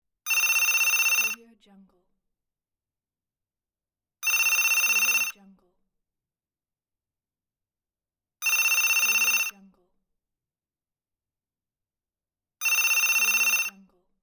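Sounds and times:
office phone ringing: 0:00.3 - 0:01.4, 0:04.2 - 0:05.4, 0:08.4 - 0:09.6, 0:12.6 - 0:13.8.

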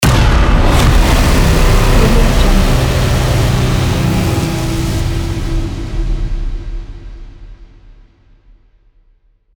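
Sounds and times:
horror tension thriller music: 0:00.0 - 0:07.4.

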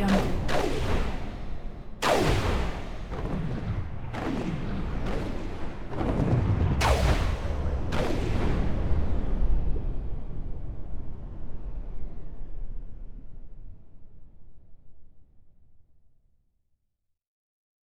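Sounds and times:
missile cannonade ambience: 0:00.0 - 0:10.2.

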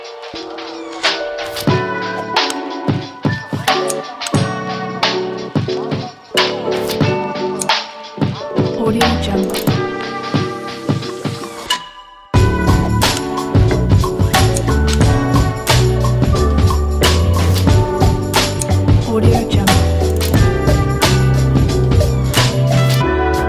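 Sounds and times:
warm lofi hip hop music: 0:00.0 - 0:23.4.

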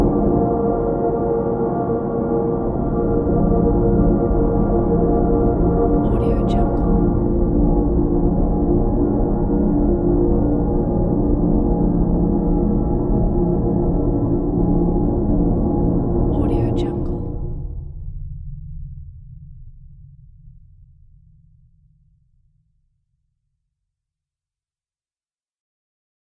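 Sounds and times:
drone: 0:00.0 - 0:18.0.

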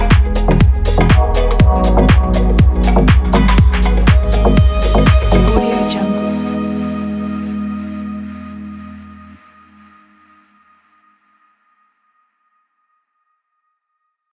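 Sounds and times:
warm lounge music: 0:00.0 - 0:10.6.

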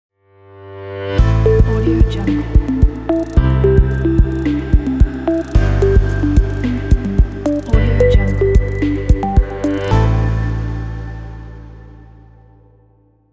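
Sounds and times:
calm technology logo jingle: 0:01.2 - 0:10.3.

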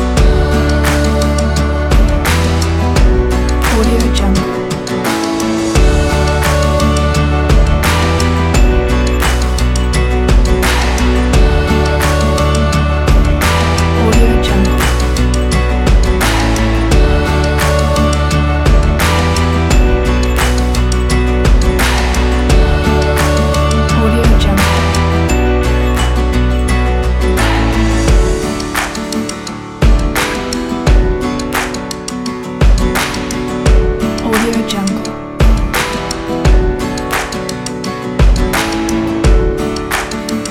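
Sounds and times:
motivational upbeat acoustic indie folk music: 0:00.0 - 0:40.4.

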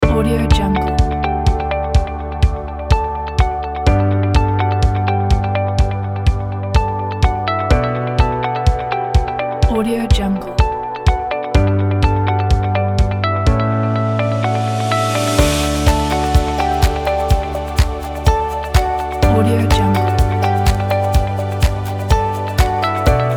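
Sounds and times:
uplifting motivational music: 0:00.0 - 0:23.3.

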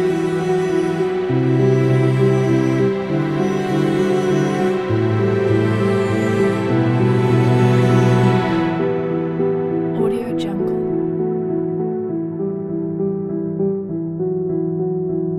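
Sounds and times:
sad documentary piano music: 0:00.0 - 0:15.3.

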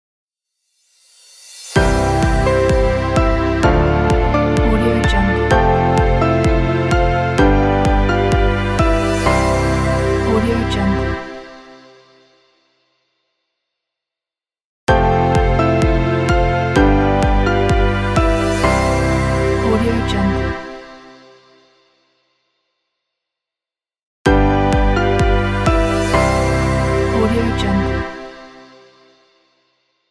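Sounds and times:
piano: 0:01.6 - 0:12.0, 0:14.9 - 0:21.3, 0:24.3 - 0:28.8
strings: 0:01.8 - 0:11.7, 0:14.9 - 0:20.9, 0:24.3 - 0:28.6.

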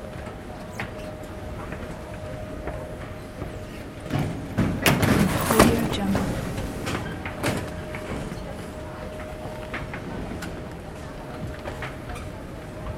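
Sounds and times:
baggage reclaim hall ambience in Italy: 0:00.0 - 0:12.9.

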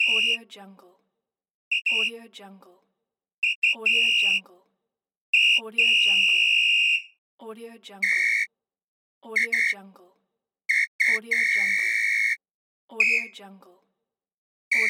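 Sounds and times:
whistle: 0:00.0 - 0:00.4, 0:01.7 - 0:02.1, 0:03.4 - 0:04.4, 0:05.4 - 0:07.2, 0:08.0 - 0:08.5, 0:09.4 - 0:09.8, 0:10.7 - 0:12.4, 0:13.0 - 0:13.4.

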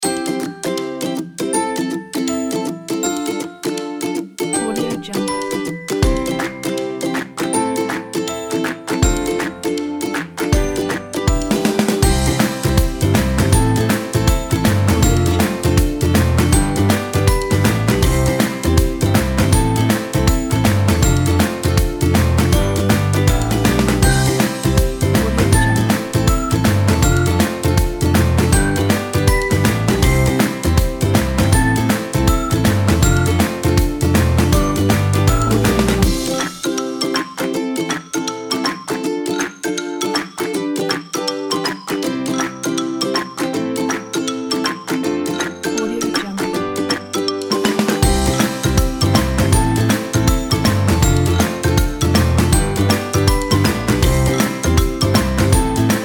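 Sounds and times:
happy ukulele music: 0:00.0 - 0:56.0.

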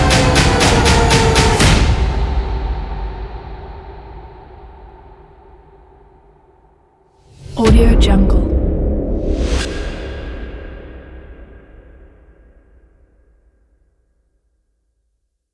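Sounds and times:
aggressive cinematic countdown: 0:00.0 - 0:03.8, 0:07.6 - 0:11.3.

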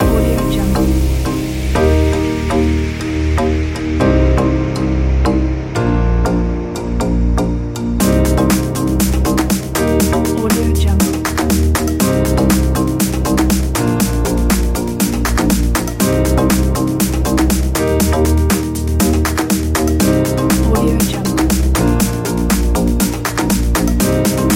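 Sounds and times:
tropical summer house music: 0:00.0 - 0:24.5.

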